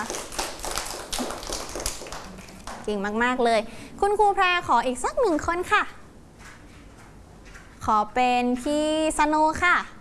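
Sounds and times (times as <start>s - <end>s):
scattered hand claps for a pupil in a class: 0.0s - 2.9s
speech: 2.9s - 6.0s, 7.9s - 9.9s.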